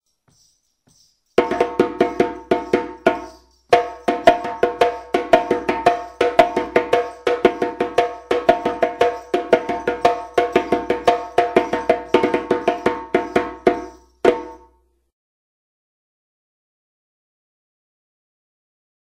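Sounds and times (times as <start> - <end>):
djembe drumming: 1.4 - 14.7.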